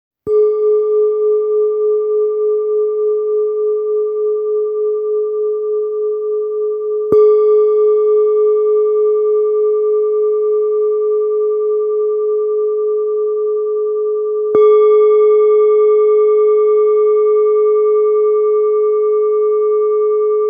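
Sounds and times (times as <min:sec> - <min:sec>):
Tibetan singing bowls in G: 0:00.3 - 0:20.4.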